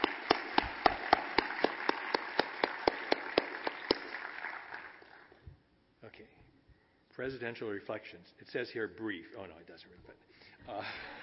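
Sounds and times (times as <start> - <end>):
audience applause: 0.0 - 5.4
speech: 7.2 - 11.2.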